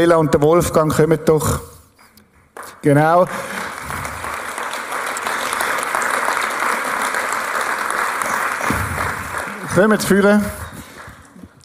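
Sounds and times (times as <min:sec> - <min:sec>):
speech: 0:00.0 - 0:01.7, 0:02.6 - 0:03.6, 0:09.8 - 0:10.6
audience clapping: 0:02.5 - 0:11.6.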